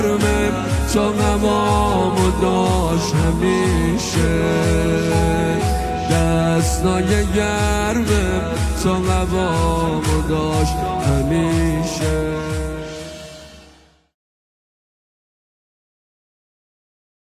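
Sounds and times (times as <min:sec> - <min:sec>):
devotional singing: 0:00.0 - 0:13.4.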